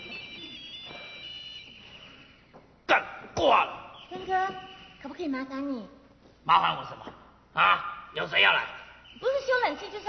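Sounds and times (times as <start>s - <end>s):
mobile phone ringing: 0.0s - 2.5s
speech: 3.4s - 10.0s.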